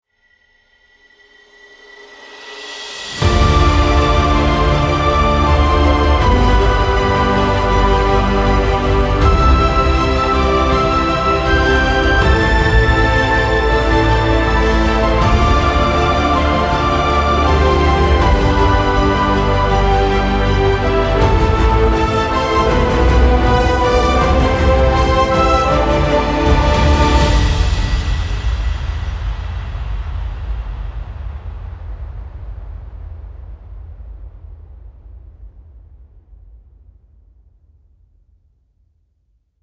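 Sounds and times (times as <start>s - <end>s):
epic heroic soundtrack: 2.8s - 30.0s.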